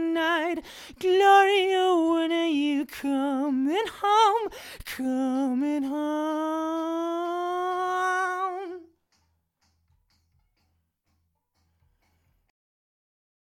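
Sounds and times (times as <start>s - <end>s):
person singing a Gloria: 0.0s - 9.0s.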